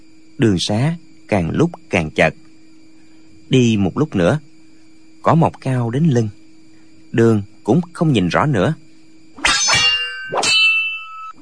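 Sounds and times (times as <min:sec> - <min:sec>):
speech: 0:00.4 - 0:02.4, 0:03.5 - 0:04.5, 0:05.2 - 0:06.4, 0:07.1 - 0:08.8
weapons clashing in a fight: 0:09.4 - 0:11.4.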